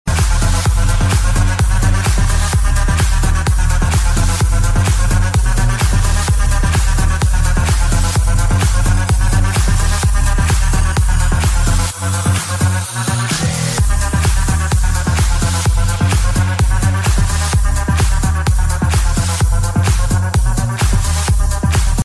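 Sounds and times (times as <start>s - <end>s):
techno hooter: 0.1s - 22.0s.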